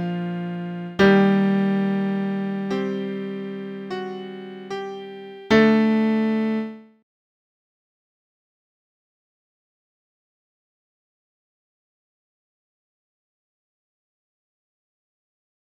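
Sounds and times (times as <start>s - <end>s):
piano: 0.0s - 7.0s.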